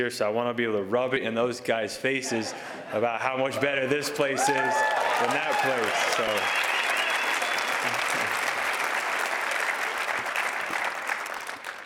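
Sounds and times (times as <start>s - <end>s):
speech: 0.0s - 6.7s, 7.8s - 8.0s
audience applause: 4.2s - 11.8s.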